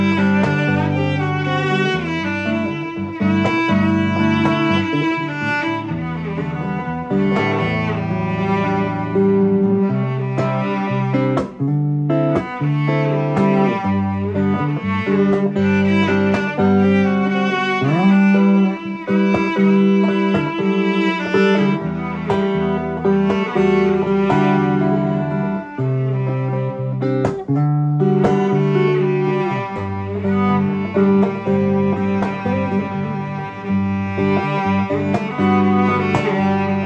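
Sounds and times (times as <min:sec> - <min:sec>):
upbeat strings: 0:00.0 - 0:36.8.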